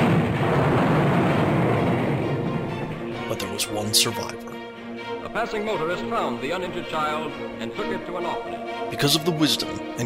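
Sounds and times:
planet exploding: 0.0s - 3.2s
speech: 3.6s - 4.5s, 5.3s - 10.0s.

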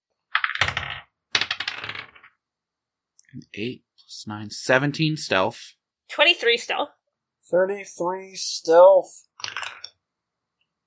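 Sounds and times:
dice clattering across a hard surface: 0.3s - 2.4s, 9.4s - 10.0s
speech: 3.3s - 9.6s.

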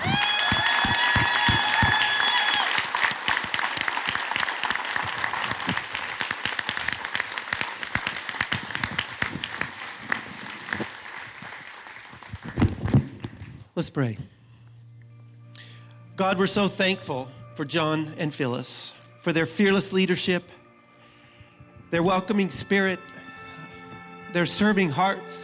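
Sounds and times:
audience applause: 0.0s - 12.9s
speech: 13.8s - 14.3s, 16.2s - 20.6s, 21.9s - 23.1s, 24.3s - 25.4s.

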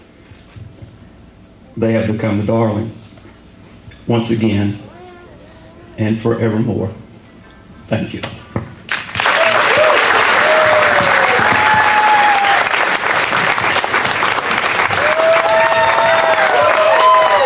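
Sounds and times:
speech: 1.8s - 3.0s, 4.1s - 4.8s, 6.0s - 7.0s, 7.9s - 8.4s
crowd applauding and cheering: 8.9s - 17.4s.

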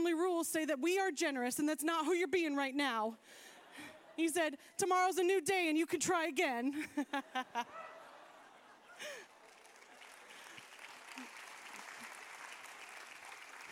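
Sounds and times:
speech: 0.0s - 7.8s
laughter: 3.3s - 4.5s, 6.7s - 12.2s, 13.6s - 13.7s
audience clapping: 8.9s - 13.7s.

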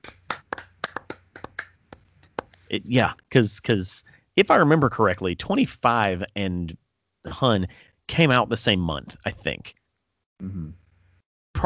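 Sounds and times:
soft golf clap: 0.0s - 2.6s
speech: 2.7s - 9.8s, 10.4s - 10.8s.

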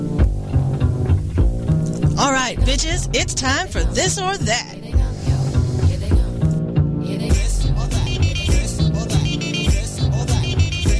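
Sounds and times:
upbeat song with a steady thumping beat as a segment intro: 0.0s - 10.9s
speech: 2.2s - 4.8s.

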